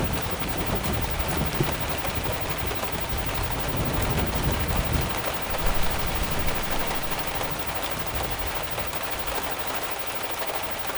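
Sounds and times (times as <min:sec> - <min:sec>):
severe thunderstorm: 0:00.0 - 0:10.8.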